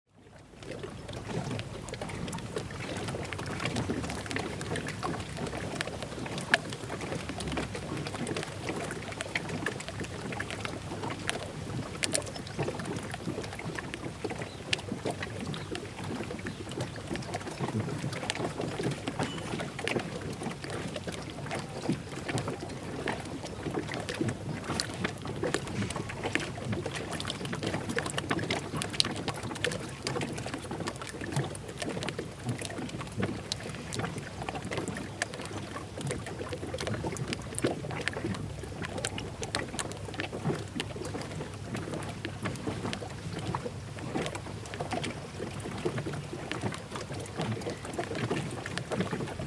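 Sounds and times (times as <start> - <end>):
boats at Thorpeness: 0.1 - 49.4.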